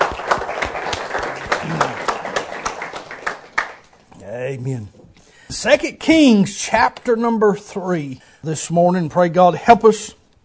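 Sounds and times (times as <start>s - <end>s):
audience applause: 0.0s - 3.9s
speech: 4.5s - 10.2s.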